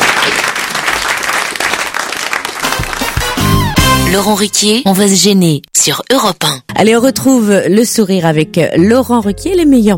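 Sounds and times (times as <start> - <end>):
studio audience applause: 0.0 - 3.8
speech: 4.1 - 9.9.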